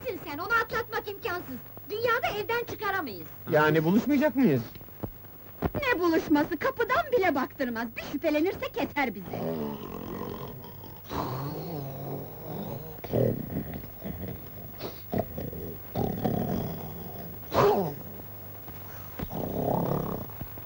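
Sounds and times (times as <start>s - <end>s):
speech: 0.3s - 4.8s, 5.7s - 10.0s
loud snoring: 9.2s - 20.6s.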